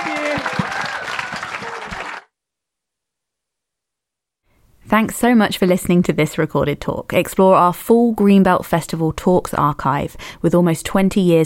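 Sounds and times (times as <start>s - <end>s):
audience round of applause: 0.0s - 2.3s
speech: 4.9s - 11.4s.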